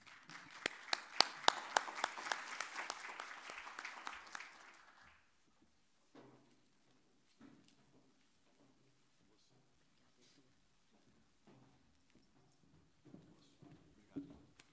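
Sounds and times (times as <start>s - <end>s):
audience applause: 0.0s - 5.2s.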